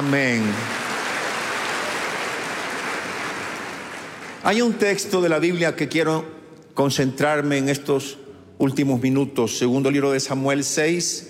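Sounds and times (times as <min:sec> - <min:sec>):
speech: 0:00.0 - 0:00.7, 0:04.4 - 0:11.2
audience applause: 0:00.0 - 0:04.6.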